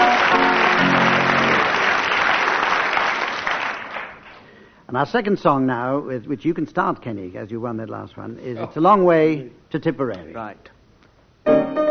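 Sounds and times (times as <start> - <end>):
round of applause: 0.0 - 4.5
speech: 4.9 - 10.8.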